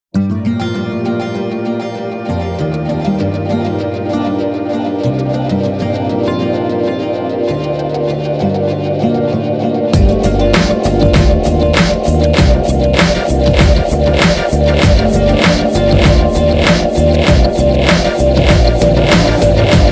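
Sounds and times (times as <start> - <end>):
ringtone melody: 0.2 - 19.9.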